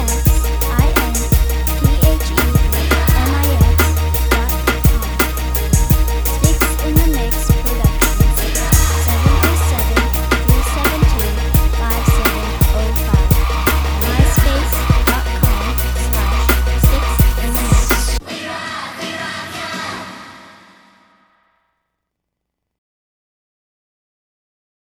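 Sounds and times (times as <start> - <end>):
beats: 0.0 - 18.2.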